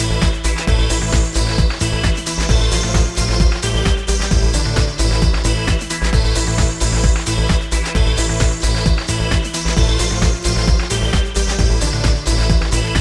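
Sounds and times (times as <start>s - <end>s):
extreme poppy synth lead: 0.0s - 12.9s.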